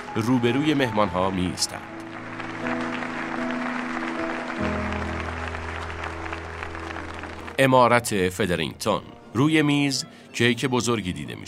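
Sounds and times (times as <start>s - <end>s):
wedding guests clapping: 0.0s - 8.0s
speech: 0.2s - 2.0s, 7.6s - 11.4s.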